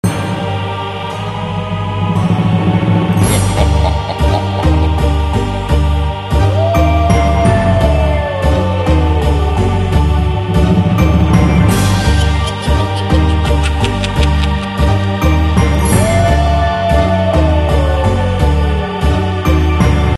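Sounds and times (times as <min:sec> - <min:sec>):
music: 0:00.0 - 0:20.1
laughter: 0:03.2 - 0:05.3, 0:11.9 - 0:15.1.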